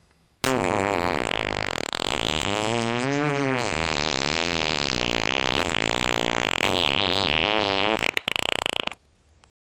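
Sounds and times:
fart: 0.4 - 9.0.

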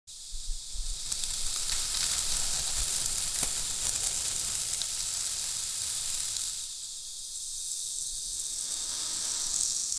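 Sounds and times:
tropical island ambience: 0.4 - 9.9.

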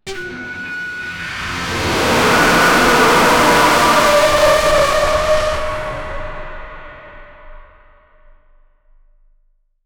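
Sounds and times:
reality-shattering portal sound effect: 0.5 - 7.6.

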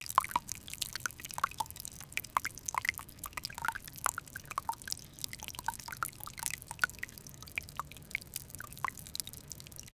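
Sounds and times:
urine stream landing on pine needles: 0.0 - 9.9.

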